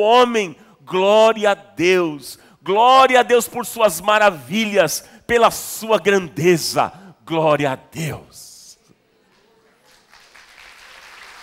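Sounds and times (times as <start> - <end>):
speech: 0.0 - 8.4
audience applauding: 9.8 - 11.4.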